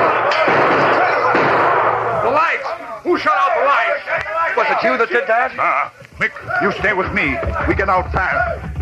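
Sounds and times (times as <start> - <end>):
gunshots in radio drama: 0.0 - 2.4
speech: 3.2 - 8.7.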